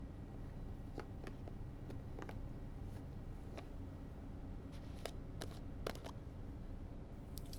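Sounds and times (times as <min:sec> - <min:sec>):
acupressure pressing on the soles of the feet: 0:00.2 - 0:06.4, 0:07.2 - 0:07.5
foot massage with honey sugar scrub: 0:00.3 - 0:06.2, 0:07.3 - 0:07.5.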